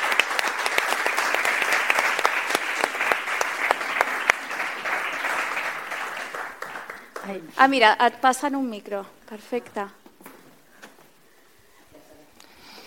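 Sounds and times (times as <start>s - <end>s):
audience applause: 0.0s - 7.7s
speech: 7.3s - 10.0s.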